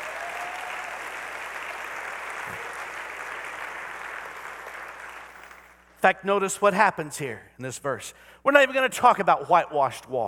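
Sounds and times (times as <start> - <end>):
audience applauding: 0.0 - 5.8
speech: 6.0 - 10.2.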